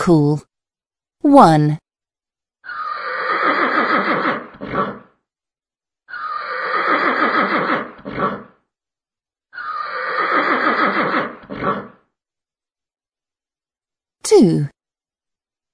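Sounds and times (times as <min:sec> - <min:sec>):
speech: 0:00.0 - 0:00.5, 0:01.2 - 0:01.8, 0:14.3 - 0:14.7
horse neighing ringtone: 0:02.6 - 0:05.0, 0:06.1 - 0:07.9, 0:09.6 - 0:11.9.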